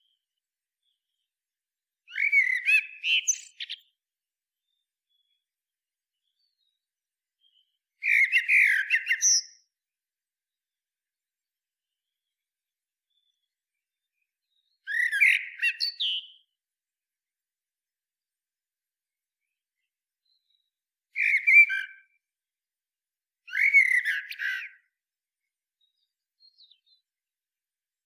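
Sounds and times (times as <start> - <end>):
common blackbird singing: 2.1 - 3.9, 7.5 - 9.6, 14.8 - 16.4, 23.5 - 24.8.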